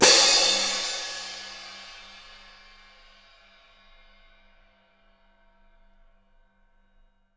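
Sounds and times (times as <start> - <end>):
splash cymbal: 0.0 - 3.8.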